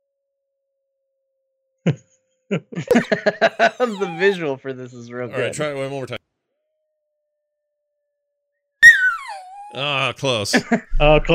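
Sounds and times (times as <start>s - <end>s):
speech: 1.8s - 6.2s, 9.8s - 11.3s
laughter: 1.9s - 4.7s, 9.8s - 11.3s
high-pitched animal howl: 3.6s - 4.4s, 8.8s - 9.9s.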